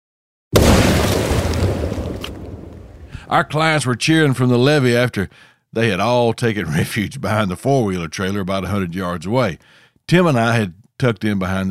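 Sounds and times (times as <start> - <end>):
explosive detonating with a large boom: 0.6 - 3.6
speech: 3.3 - 11.6.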